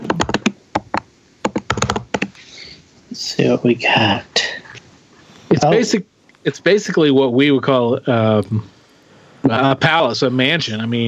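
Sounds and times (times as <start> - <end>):
computer keyboard typing: 0.1 - 2.4
speech: 3.4 - 4.4, 5.6 - 8.8, 9.4 - 11.0.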